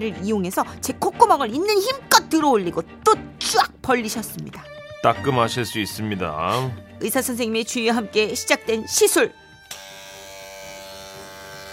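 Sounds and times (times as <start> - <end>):
speech: 0.0 - 9.4
nose hair trimmer buzzing: 9.6 - 11.7.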